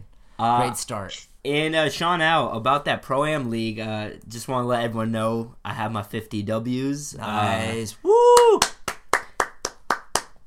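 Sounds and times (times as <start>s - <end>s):
speech: 0.4s - 8.7s
hand clapping: 8.3s - 10.4s.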